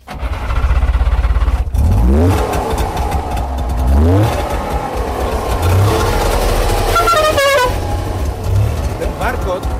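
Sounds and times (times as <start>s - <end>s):
small two-stroke Syrena car engine puttering and revving: 0.0s - 9.7s
Syrena car horn honking: 6.6s - 8.0s.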